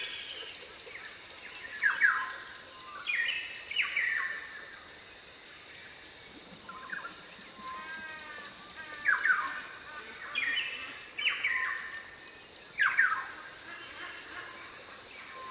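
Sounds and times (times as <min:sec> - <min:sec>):
Ethiopian cloud forest dawn chorus: 0:00.0 - 0:04.9, 0:06.6 - 0:15.4.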